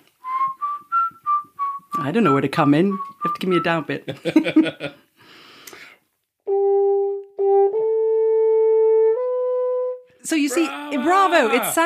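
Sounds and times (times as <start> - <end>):
speech: 2.0 - 5.0, 10.3 - 11.8
laughter: 4.1 - 5.0, 10.5 - 11.8
horn playing a short passage: 6.4 - 11.8.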